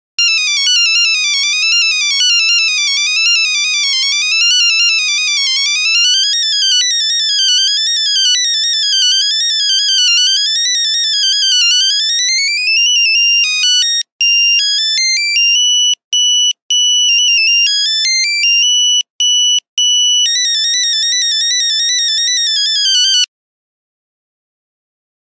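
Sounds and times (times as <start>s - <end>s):
Nokia phone buzzer: 0.2s - 23.3s.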